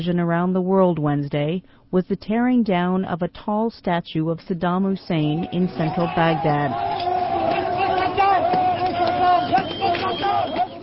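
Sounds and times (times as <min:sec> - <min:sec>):
speech: 0:00.0 - 0:07.2
large crowd roaring and shouting: 0:05.3 - 0:10.8.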